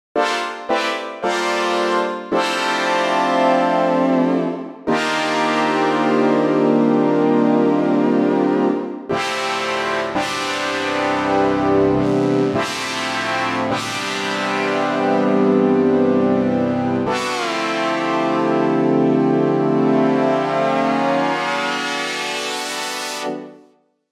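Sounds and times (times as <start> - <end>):
Xpander fifth chords: 0.2 - 23.5.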